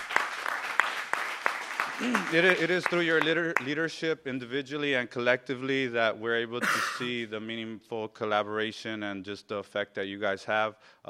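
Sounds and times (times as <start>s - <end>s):
audience applause at a community gathering honoring neighborhood councils: 0.0s - 3.3s
speech: 2.0s - 11.0s.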